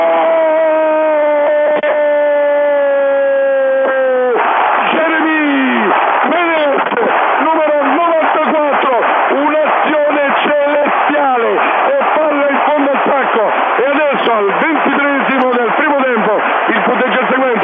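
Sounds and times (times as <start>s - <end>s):
single voice holding a long high shout: 0.0s - 5.9s
stadium crowd cheering a goal: 0.0s - 17.6s.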